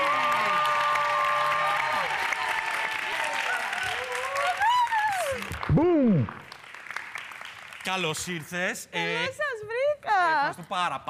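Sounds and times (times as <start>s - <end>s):
audience applause: 0.0s - 8.5s
speech: 7.9s - 9.4s, 10.2s - 11.0s.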